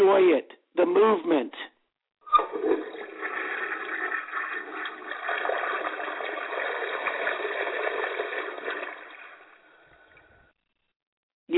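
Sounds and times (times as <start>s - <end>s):
speech: 0.2s - 1.7s
water gurgling down a drain: 2.3s - 10.4s.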